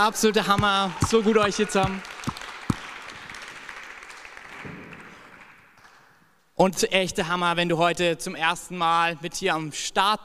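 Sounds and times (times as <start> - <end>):
speech: 0.0 - 2.2, 6.6 - 10.2
audience applause for the band: 0.4 - 6.0.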